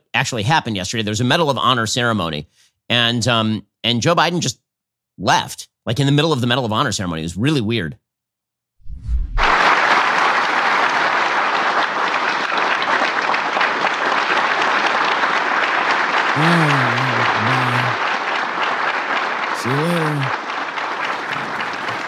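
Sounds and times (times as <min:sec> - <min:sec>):
speech: 0:00.2 - 0:04.6, 0:05.2 - 0:08.0, 0:16.4 - 0:16.8
Medal of Honor ceremony audience applause: 0:09.4 - 0:22.0
person cheering or shouting: 0:16.4 - 0:18.0, 0:19.6 - 0:20.3.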